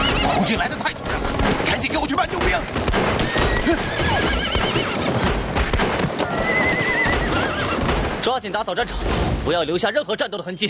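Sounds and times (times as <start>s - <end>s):
horses neighing: 0.0s - 1.4s, 2.8s - 8.2s
hooves clip-clopping: 0.0s - 8.3s
speech: 0.5s - 0.9s, 8.5s - 10.6s.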